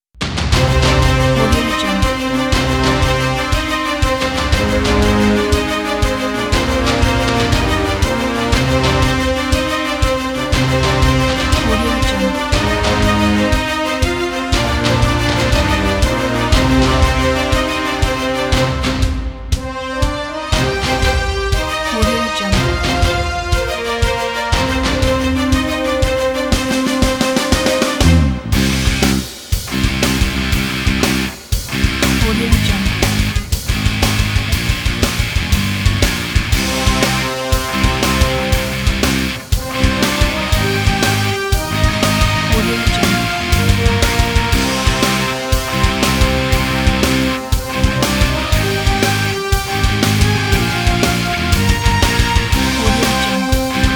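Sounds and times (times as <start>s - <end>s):
epic battle rock music: 0.2s - 53.9s.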